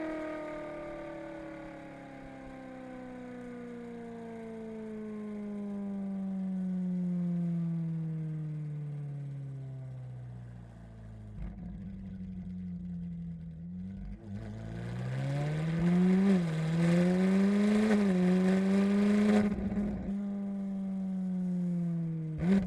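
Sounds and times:
2013 Ferrari 458 straight pipes exhaust: 0.0 - 22.6.

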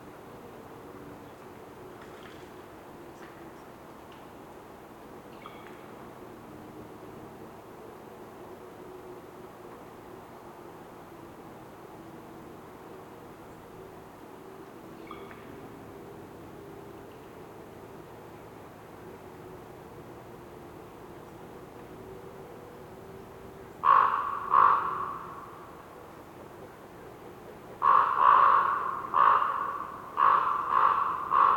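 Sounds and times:
raven croaking in a winter forest in North Laurentian Woods Canada: 23.8 - 25.7, 27.8 - 31.5.

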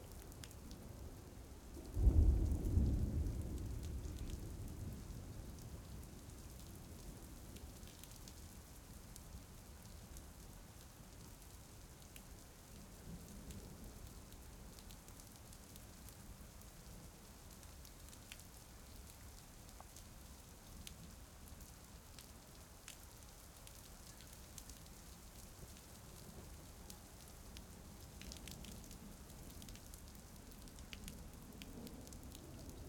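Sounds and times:
soft rain: 0.0 - 32.8
thunder: 1.8 - 6.0.

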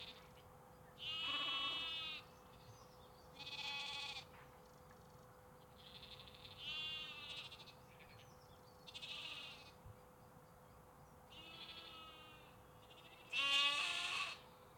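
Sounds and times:
sheep and lambs bleating in the UK: 1.0 - 2.2, 3.4 - 4.3, 5.8 - 7.8, 8.9 - 9.7, 11.3 - 14.4.

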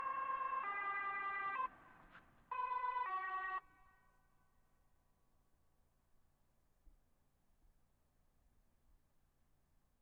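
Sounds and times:
Volvo V70 police car siren: 0.0 - 1.8, 2.5 - 3.8.

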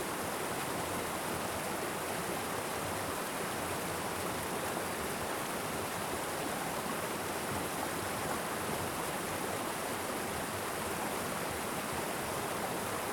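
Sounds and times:
small waterfall in a Vermont creek: 0.0 - 13.1.

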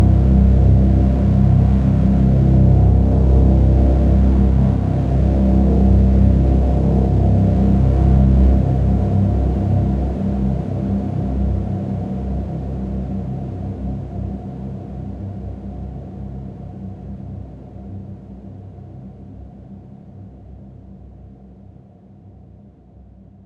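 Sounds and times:
dark intensive drone of electric waves: 0.0 - 17.4.

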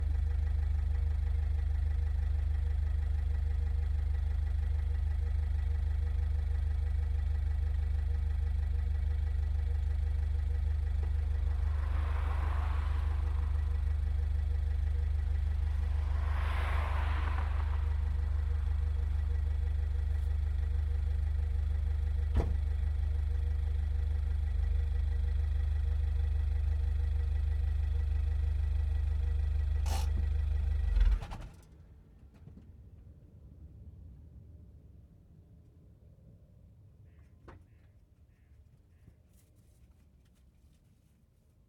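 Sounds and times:
Citroen C2 exhaust driving and stopping: 0.0 - 31.4.

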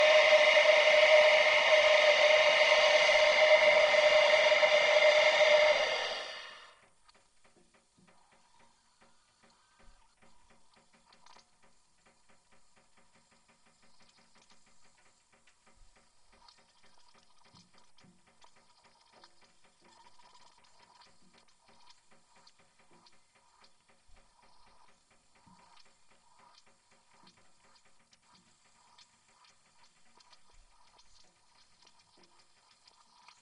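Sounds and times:
model steam engine whistle pitched down: 0.0 - 6.8.

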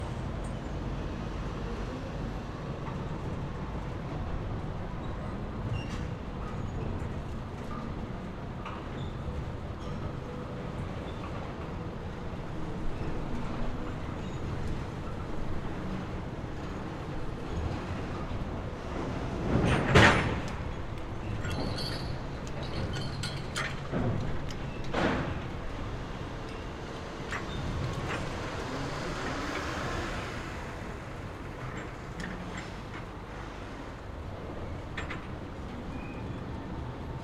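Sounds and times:
cargo ship at a dock: 0.0 - 37.2
trucks at a dock: 0.0 - 37.2
cranes operating at a dock: 25.1 - 36.0.

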